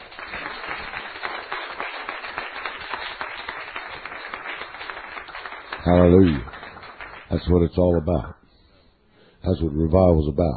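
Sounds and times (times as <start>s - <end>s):
crowd clapping: 0.0s - 7.7s
speech: 5.9s - 6.5s, 7.3s - 8.4s, 9.4s - 10.5s.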